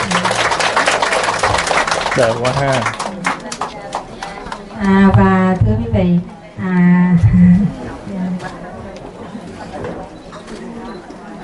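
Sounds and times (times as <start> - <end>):
crowd applause: 0.0 - 4.8
speech: 2.2 - 3.0, 4.8 - 8.6.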